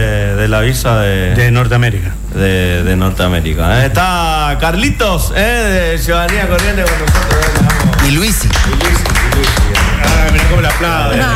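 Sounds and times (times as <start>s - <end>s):
speech: 0.4s - 11.3s
hand clapping: 6.2s - 11.2s.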